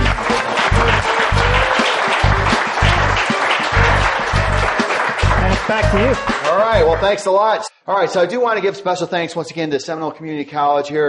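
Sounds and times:
low rhythmic thumping: 0.0s - 7.1s
audience applause: 0.0s - 7.2s
speech: 5.7s - 11.0s.

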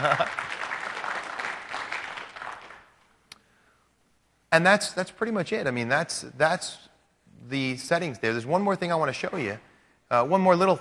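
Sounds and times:
speech: 0.0s - 0.5s, 4.5s - 6.9s, 7.5s - 10.7s
applause: 0.0s - 3.0s.

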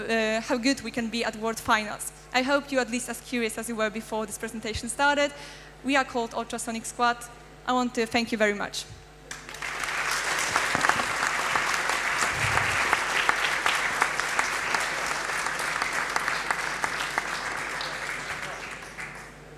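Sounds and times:
speech: 0.0s - 9.0s
audience applause after a team presentation: 9.3s - 19.4s.

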